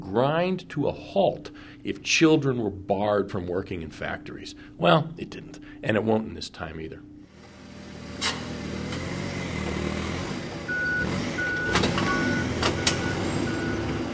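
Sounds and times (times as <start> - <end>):
speech: 0.1 - 7.1
truck idling: 7.3 - 14.1
crates of apples clunking as loaded: 11.6 - 14.1.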